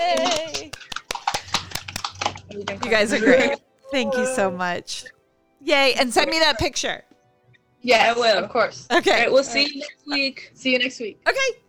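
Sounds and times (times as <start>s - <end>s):
small group clapping hands: 0.0s - 2.4s
speech: 2.6s - 7.1s, 7.8s - 11.6s.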